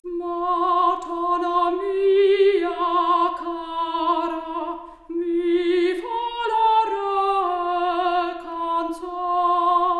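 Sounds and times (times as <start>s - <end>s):
4-bit stereo soprano voice: 0.0s - 9.9s.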